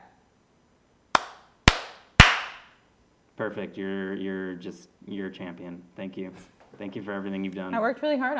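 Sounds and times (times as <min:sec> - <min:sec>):
hand claps for audio sync: 0:01.2 - 0:02.7
speech: 0:03.4 - 0:08.3.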